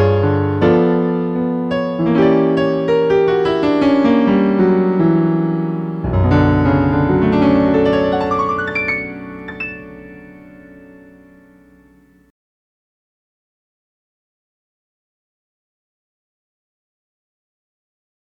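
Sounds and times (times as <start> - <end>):
waltz in B minor: 0.0 - 12.0.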